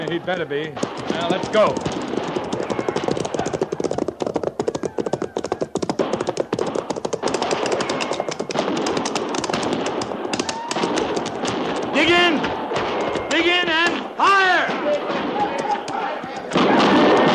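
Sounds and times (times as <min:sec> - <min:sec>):
horses galloping as riders ride away: 0:00.0 - 0:17.3
speech: 0:00.1 - 0:02.4.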